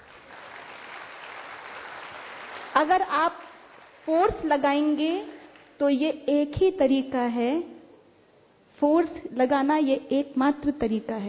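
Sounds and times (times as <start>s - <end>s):
audience clapping during a talk: 0.0s - 4.3s
speech: 2.8s - 7.8s, 8.8s - 11.2s.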